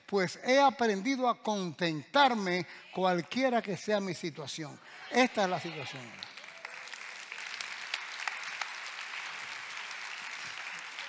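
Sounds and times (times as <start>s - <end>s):
speech: 0.1s - 6.3s
audience applause: 5.1s - 11.0s.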